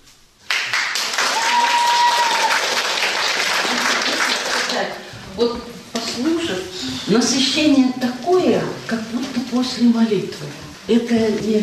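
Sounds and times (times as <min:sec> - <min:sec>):
audience ovation in concert hall: 0:00.5 - 0:04.8
speech: 0:05.4 - 0:11.6.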